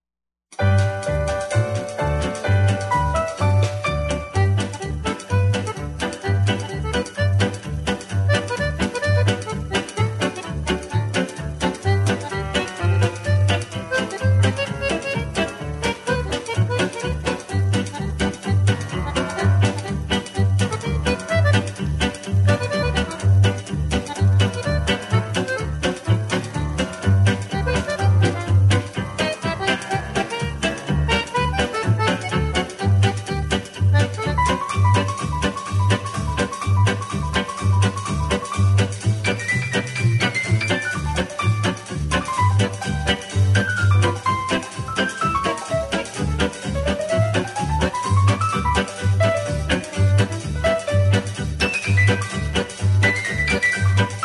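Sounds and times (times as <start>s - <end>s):
instrumental square dance music: 0.5s - 54.2s.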